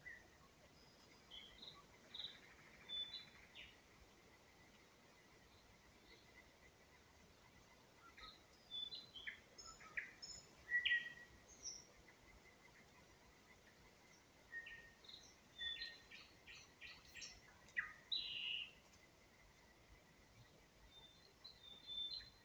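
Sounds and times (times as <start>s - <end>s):
nightingale spring song in Ukraine: 0.0s - 3.8s, 8.0s - 18.9s, 20.9s - 22.4s.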